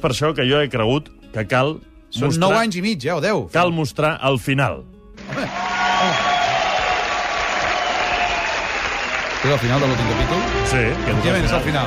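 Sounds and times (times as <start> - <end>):
speech: 0.0 - 6.3, 9.4 - 11.8
people applauding at a show's end: 5.2 - 11.8.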